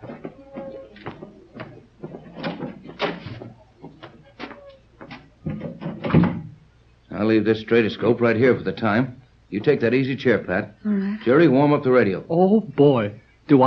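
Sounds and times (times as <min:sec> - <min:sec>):
door being opened: 0:00.0 - 0:06.6
speech: 0:07.2 - 0:13.6.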